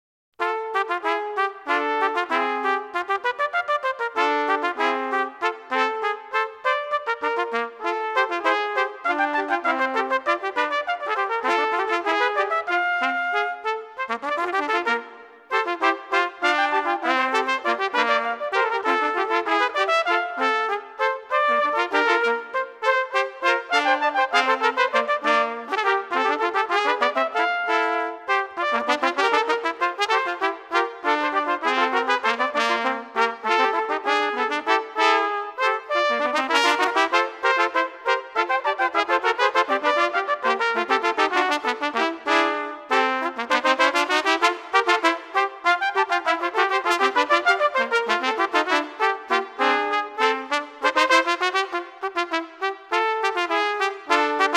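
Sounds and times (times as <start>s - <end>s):
trumpet trio: 0.4s - 54.5s.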